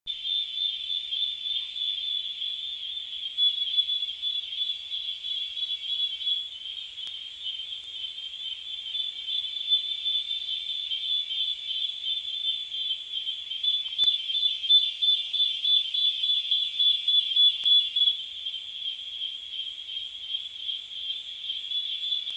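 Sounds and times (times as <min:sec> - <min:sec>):
cicada buzzing: 0:00.1 - 0:22.3.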